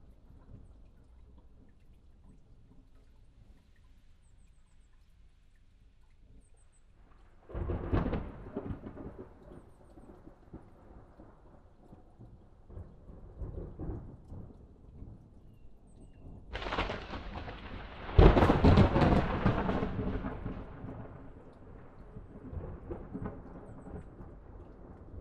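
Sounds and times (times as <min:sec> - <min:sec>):
thunderstorm: 0:07.4 - 0:15.4, 0:16.2 - 0:25.1.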